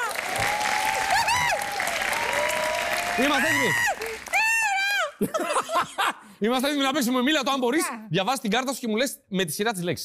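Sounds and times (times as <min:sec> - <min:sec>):
group applause during a party-style game: 0:00.0 - 0:04.7
speech: 0:03.2 - 0:03.9, 0:05.2 - 0:10.0.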